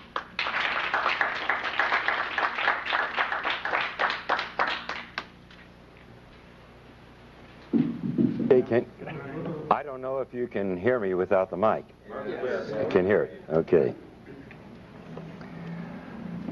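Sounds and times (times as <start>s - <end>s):
audience clapping to welcome a doctor: 0.0s - 5.4s
speech: 8.6s - 9.1s, 9.7s - 14.1s.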